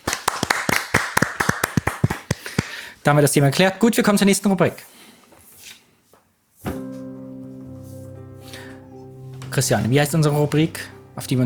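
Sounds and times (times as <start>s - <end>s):
applause: 0.0s - 2.8s
speech: 3.1s - 4.9s, 9.6s - 11.4s.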